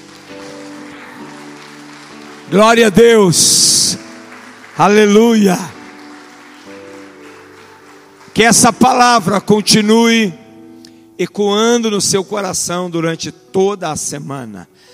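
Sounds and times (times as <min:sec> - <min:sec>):
audience applauding: 0:00.0 - 0:09.7
speech: 0:02.5 - 0:04.0, 0:04.8 - 0:05.8, 0:08.4 - 0:10.4, 0:11.2 - 0:14.9.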